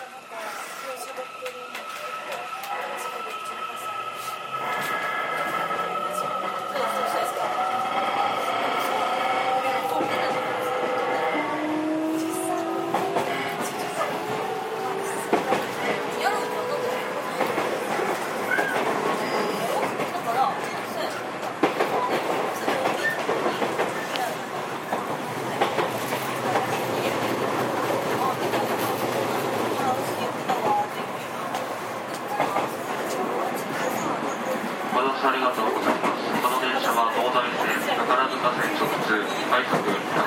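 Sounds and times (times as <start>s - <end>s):
JR 207 series train motor whine: 0.0s - 18.4s
JR 207 series train wheels rumbling on rail: 0.0s - 40.2s
faint voices aboard the train: 0.0s - 40.2s.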